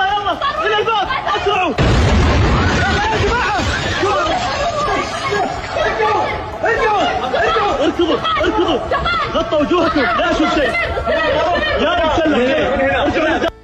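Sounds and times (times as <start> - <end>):
crowd of agitated voices shouting and chattering: 0.0 - 13.5
missile explosion at an airport: 1.8 - 4.8
lingering rumble: 1.8 - 13.1
laughter: 2.6 - 13.6.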